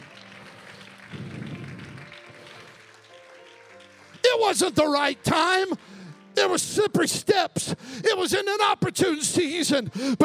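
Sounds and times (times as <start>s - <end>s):
audience clapping hands: 0.0s - 6.6s
speech: 4.4s - 10.2s.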